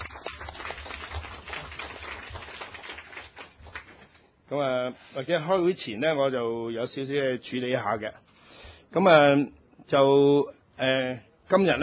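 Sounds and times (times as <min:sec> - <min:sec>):
audience applause: 0:00.0 - 0:04.2
speech: 0:04.5 - 0:08.2, 0:08.9 - 0:11.8.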